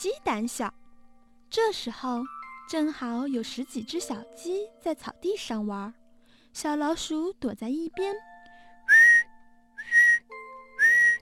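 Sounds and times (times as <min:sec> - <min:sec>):
speech: 0:00.0 - 0:00.8, 0:01.5 - 0:06.0, 0:06.6 - 0:08.3
shrill whistle blasts: 0:08.9 - 0:10.2, 0:10.8 - 0:11.2.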